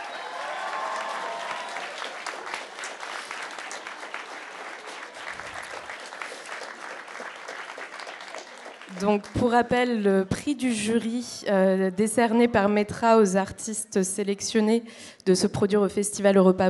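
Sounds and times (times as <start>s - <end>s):
faint cheer or whistle: 0.0s - 2.2s
audience applauding artists: 0.0s - 9.6s
speech: 9.0s - 16.6s.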